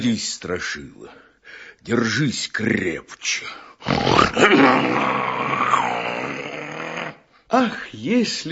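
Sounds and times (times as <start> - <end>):
speech: 0.0 - 6.0, 7.5 - 8.5
lion roaring as it leaps across a deep ravine: 3.8 - 7.2.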